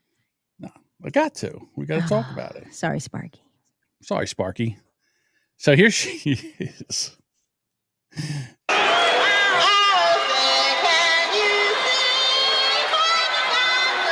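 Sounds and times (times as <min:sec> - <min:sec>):
speech: 0:00.6 - 0:03.4, 0:04.0 - 0:04.8, 0:05.6 - 0:07.2, 0:08.1 - 0:08.5
crowd booing a singer: 0:08.7 - 0:14.0.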